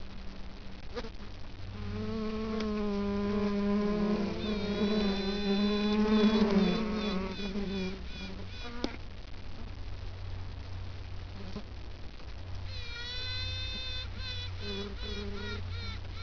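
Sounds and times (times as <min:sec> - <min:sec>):
bees buzzing during beekeeping: 0:01.0 - 0:09.0, 0:12.7 - 0:16.2.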